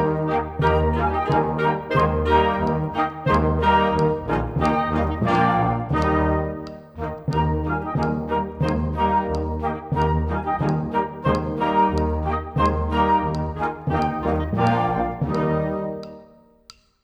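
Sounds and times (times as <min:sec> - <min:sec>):
classical music: 0:00.0 - 0:16.7
click: 0:00.0 - 0:16.9.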